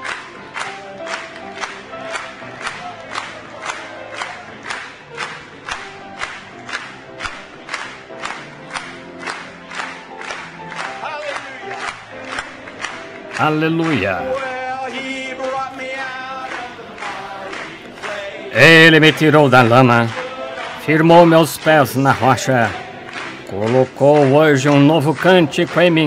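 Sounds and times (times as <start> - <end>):
audience clapping: 0.0 - 26.0
audience cheering: 1.0 - 5.3, 10.5 - 26.0
speech: 13.4 - 15.1, 18.6 - 20.2, 20.9 - 22.8, 23.5 - 26.0.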